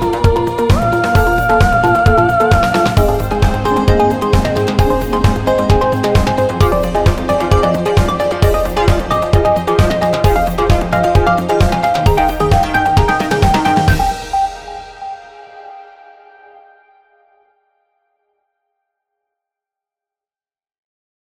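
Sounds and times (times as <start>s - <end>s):
dynamic music: 0.0s - 16.3s.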